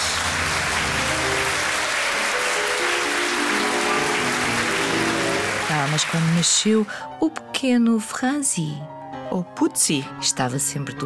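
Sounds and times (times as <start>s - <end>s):
applause and ovations: 0.0s - 7.1s
speech: 6.0s - 11.0s.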